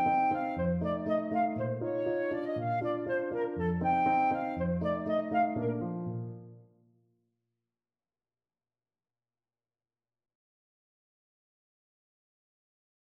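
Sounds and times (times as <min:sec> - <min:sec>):
ecossaise dance played on clarinet: 0:00.0 - 0:06.7.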